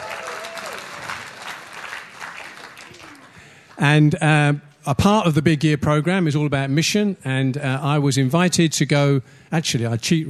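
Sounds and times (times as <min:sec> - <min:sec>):
audience clapping: 0:00.0 - 0:04.0
speech: 0:03.8 - 0:10.2.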